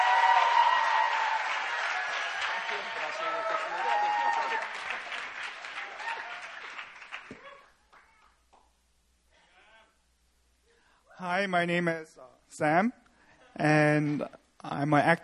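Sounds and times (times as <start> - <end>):
church retreat audience applause welcoming a speaker: 0.0 - 8.3
speech: 2.7 - 5.6, 11.4 - 13.0, 13.6 - 15.2.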